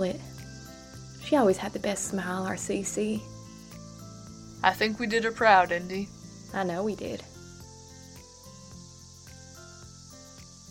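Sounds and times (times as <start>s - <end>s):
speech: 0.0s - 0.3s, 1.2s - 3.4s, 4.6s - 7.3s
cicadas buzzing at night: 0.0s - 10.6s.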